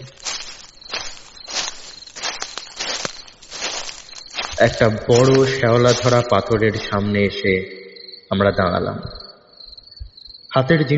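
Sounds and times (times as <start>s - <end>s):
human footsteps through overgrown grass among old graves: 0.0s - 7.3s
speech: 4.6s - 9.2s, 10.6s - 10.9s.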